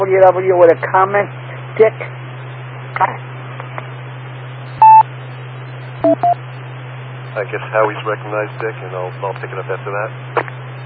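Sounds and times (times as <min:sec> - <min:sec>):
speech: 0:00.0 - 0:02.2, 0:03.0 - 0:03.3, 0:07.4 - 0:10.5
low hum: 0:00.0 - 0:10.8
radio static hiss: 0:00.8 - 0:05.0, 0:06.2 - 0:10.8
radio repeater beeps: 0:04.8 - 0:05.1, 0:06.0 - 0:06.4.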